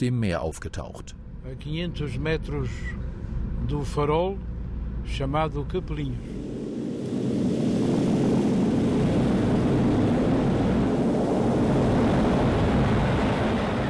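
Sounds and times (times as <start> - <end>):
speech: 0.0 - 6.6
volcanic eruption rumble: 4.6 - 13.8.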